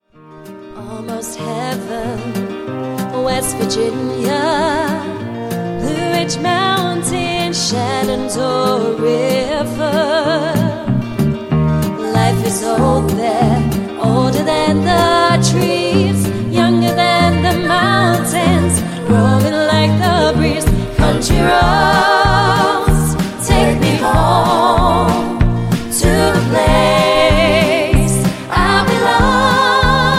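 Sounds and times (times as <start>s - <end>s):
country duo performing live: 0.6s - 30.1s.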